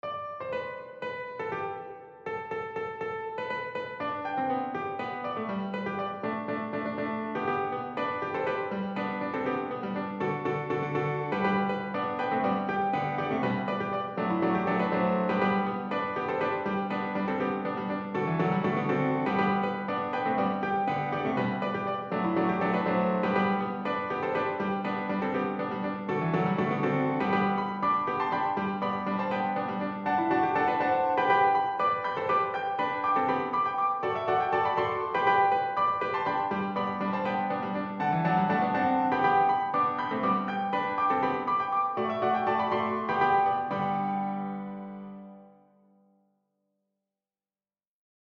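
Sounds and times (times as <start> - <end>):
piano: 0.0 - 46.4.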